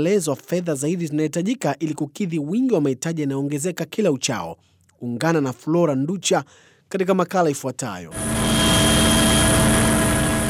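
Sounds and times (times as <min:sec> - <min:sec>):
speech: 0:00.0 - 0:08.4
aid aircraft engine drone in flight carrying humanitarian relief: 0:08.1 - 0:10.4.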